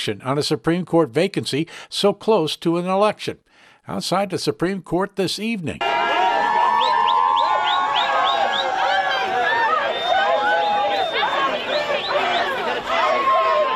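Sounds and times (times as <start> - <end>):
speech: 0.0 - 5.9
outdoor crowd of supporters cheering and chanting: 5.8 - 13.7.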